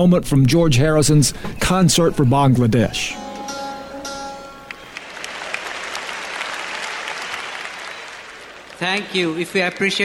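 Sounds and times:
speech: 0.0 - 3.2, 8.8 - 10.0
concert audience applause: 4.7 - 10.0.

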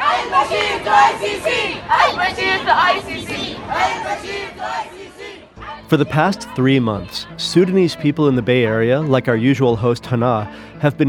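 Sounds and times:
protest march crowd chanting: 0.0 - 8.0
speech: 0.3 - 5.1, 5.9 - 11.0.

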